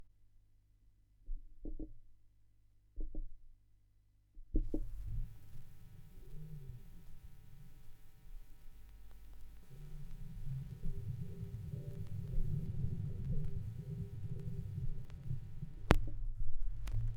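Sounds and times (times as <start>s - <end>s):
vinyl record noise: 4.6s - 17.1s.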